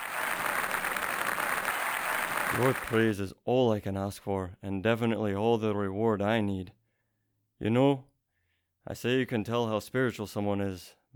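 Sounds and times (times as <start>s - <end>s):
audience applause: 0.0s - 3.2s
speech: 2.5s - 6.8s, 7.6s - 8.1s, 8.8s - 11.1s.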